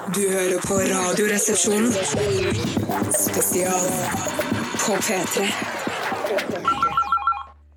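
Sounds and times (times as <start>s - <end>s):
speech: 0.1s - 6.7s
telephone ringing: 6.6s - 7.6s.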